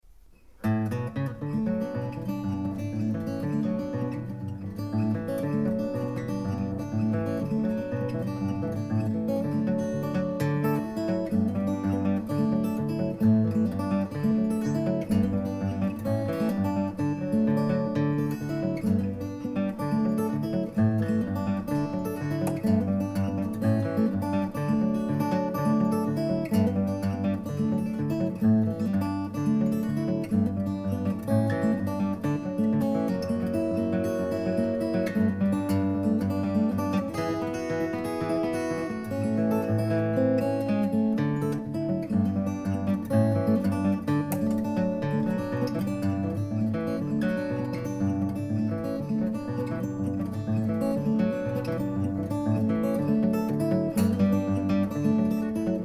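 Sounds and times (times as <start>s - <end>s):
guitar: 0.0s - 55.8s.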